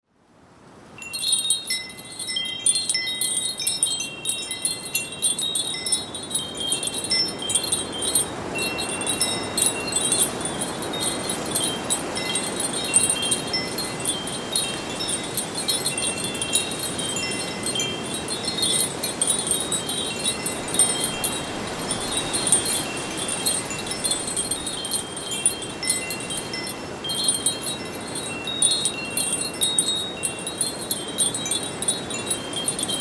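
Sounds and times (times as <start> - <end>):
wind chimes ringing: 1.0 - 33.0
soft rush of wind: 6.2 - 27.8.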